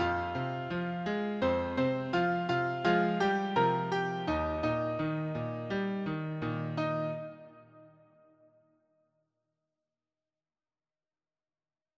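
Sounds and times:
advanced piano solo: 0.0s - 8.1s.

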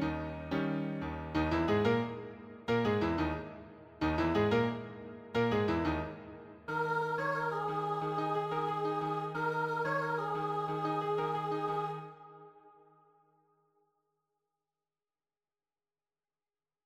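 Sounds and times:
piano accompaniment: 0.0s - 12.5s.

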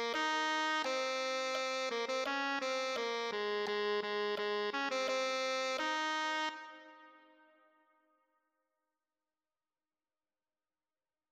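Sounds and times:
tenor saxophone: 0.0s - 7.6s.

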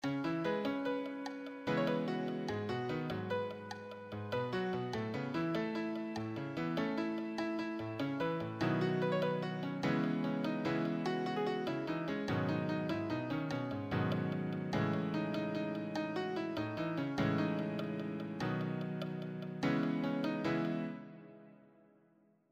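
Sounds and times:
solo piano: 0.0s - 21.9s.

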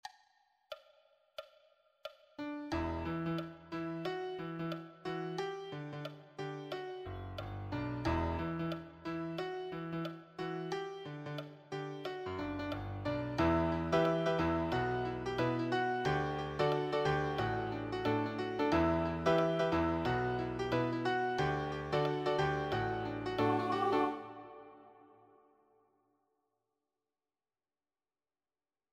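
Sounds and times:
musical accompaniment: 2.4s - 25.2s.

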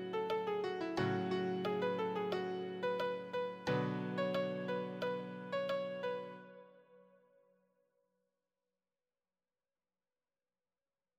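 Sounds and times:
easy solo piano: 0.0s - 7.0s.

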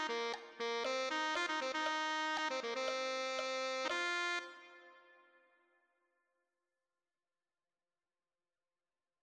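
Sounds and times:
tenor saxophone: 0.0s - 5.5s.

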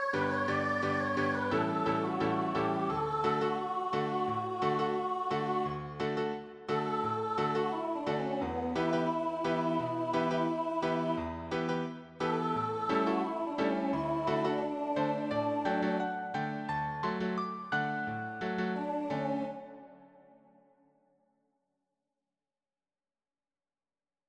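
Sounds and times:
piano accompaniment: 0.1s - 19.5s.

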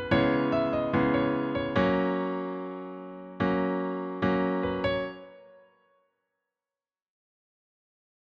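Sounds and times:
solo piano: 0.0s - 5.7s.

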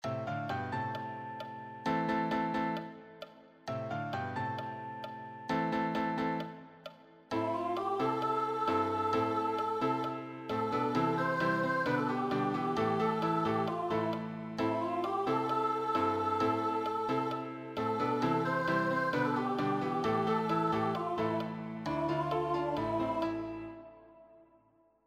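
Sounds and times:
musical accompaniment: 0.0s - 24.4s.

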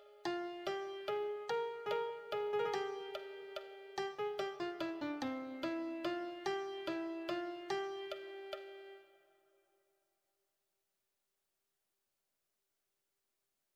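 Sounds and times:
melody: 0.3s - 9.0s.

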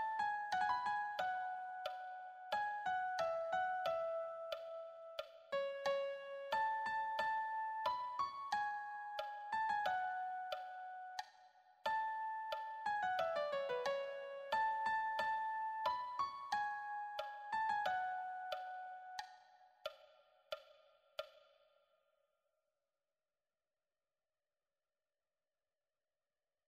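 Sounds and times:
solo piano: 0.0s - 11.2s, 11.9s - 19.2s.

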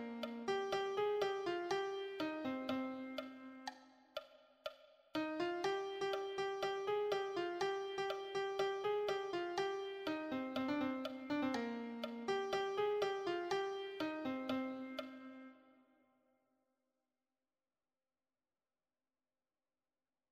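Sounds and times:
piano melody: 0.0s - 3.7s, 5.2s - 15.6s.

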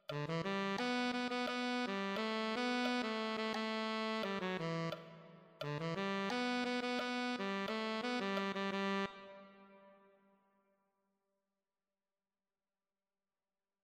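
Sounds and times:
alto saxophone: 0.0s - 10.2s.

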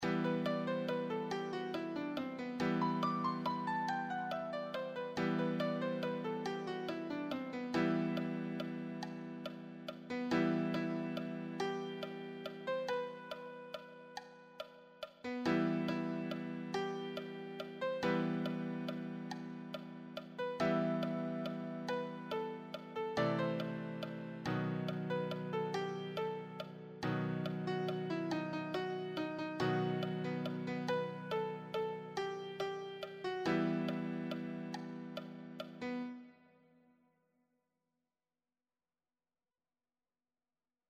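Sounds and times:
easy solo piano: 0.0s - 36.4s.

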